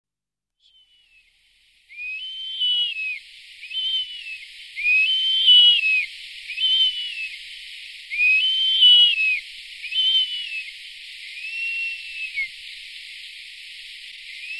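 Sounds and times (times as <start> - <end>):
Gypaetus barbatus bearded vulture whistling calls: 1.9 - 7.4, 8.1 - 10.8, 11.4 - 12.6, 14.3 - 14.5.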